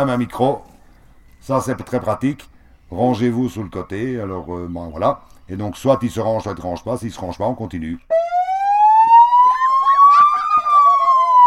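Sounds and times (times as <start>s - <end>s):
speech: 0.0s - 0.7s, 1.4s - 8.2s
police car siren wailing: 8.1s - 11.4s.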